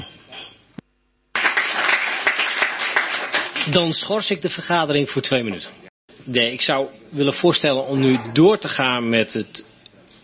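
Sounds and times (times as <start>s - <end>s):
applause: 1.3s - 4.0s
speech: 3.7s - 9.7s.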